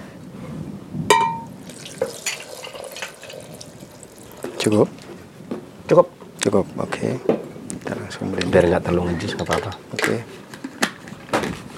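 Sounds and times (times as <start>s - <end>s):
water poured into yogurt for a smoothie: 1.4s - 5.2s
speech: 4.6s - 5.0s, 5.9s - 7.4s, 8.1s - 10.4s.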